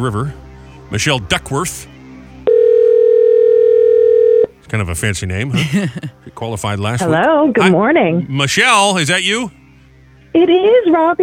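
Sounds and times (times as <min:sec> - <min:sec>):
speech: 0:00.0 - 0:01.9, 0:04.7 - 0:09.6, 0:10.3 - 0:11.2
telephone dial tone: 0:02.5 - 0:04.5
laughter: 0:05.4 - 0:07.3.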